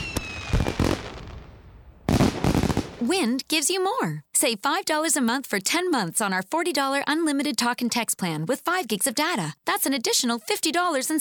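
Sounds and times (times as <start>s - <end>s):
celebratory fireworks launching and bursting: 0.0s - 3.1s
speech: 3.0s - 11.1s.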